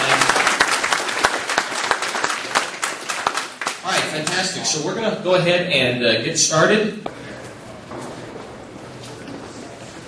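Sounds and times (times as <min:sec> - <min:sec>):
audience applause: 0:00.0 - 0:04.6
speech: 0:04.2 - 0:07.1.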